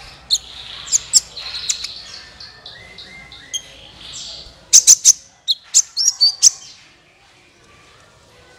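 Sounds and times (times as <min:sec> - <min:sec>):
Van Hasselt's sunbird chirps and whistles: 0:00.0 - 0:06.8.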